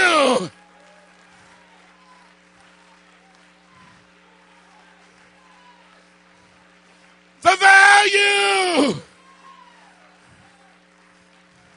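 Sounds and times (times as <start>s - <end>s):
audience clapping: 0.0s - 11.7s
low electrical hum: 0.0s - 11.7s
speech: 0.4s - 0.6s.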